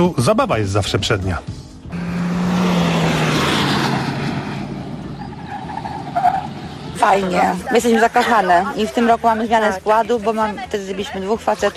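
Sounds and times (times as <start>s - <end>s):
speech: 0.0s - 1.6s, 7.0s - 11.7s
car engine droning at a rally of three-diamond badge car enthusiasts: 1.7s - 7.2s.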